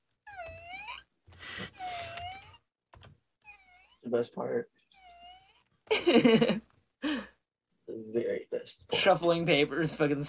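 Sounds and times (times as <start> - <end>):
voice imitating a squeaking chair: 0.2 - 2.7, 3.4 - 4.2, 4.8 - 5.7
speech: 4.1 - 4.8, 6.0 - 6.7, 8.7 - 10.2.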